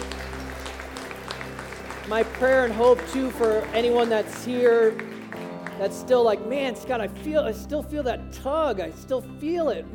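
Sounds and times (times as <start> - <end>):
audience applause: 0.0 - 6.4
speech: 2.1 - 5.2, 5.8 - 9.9.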